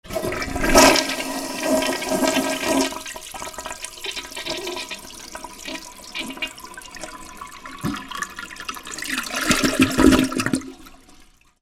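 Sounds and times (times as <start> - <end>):
bathroom ambience: 0.0 - 11.6.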